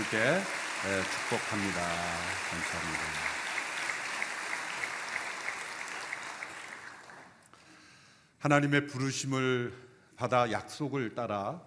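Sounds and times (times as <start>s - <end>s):
audience applause: 0.0s - 7.4s
speech: 0.1s - 3.4s, 8.4s - 11.6s.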